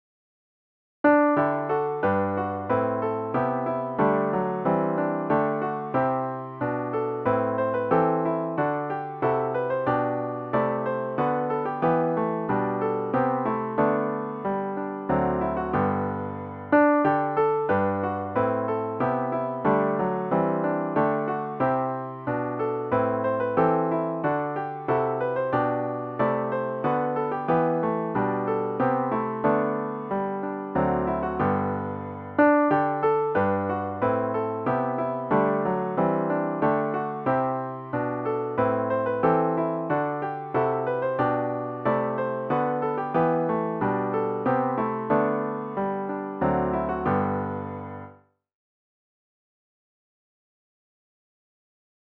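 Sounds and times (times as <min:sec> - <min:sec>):
solo piano: 0:01.1 - 0:48.3.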